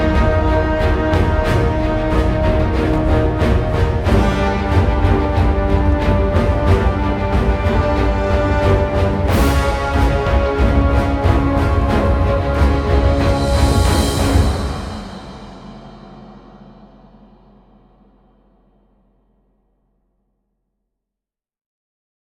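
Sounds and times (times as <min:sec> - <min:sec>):
frantic boss fight stage music: 0:00.0 - 0:16.0.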